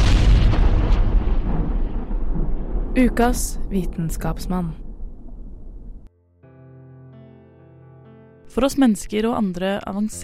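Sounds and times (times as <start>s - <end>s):
Big Bang explosion sound effect: 0.0s - 6.1s
speech: 3.0s - 4.8s, 8.6s - 10.2s.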